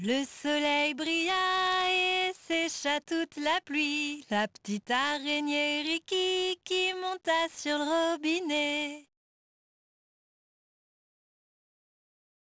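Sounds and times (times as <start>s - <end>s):
person singing a nursery song in French: 0.0s - 9.1s.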